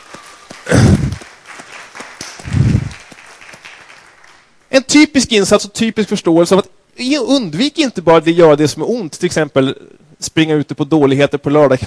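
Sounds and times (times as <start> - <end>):
audience applause: 0.0 - 4.5
speech: 4.9 - 11.8.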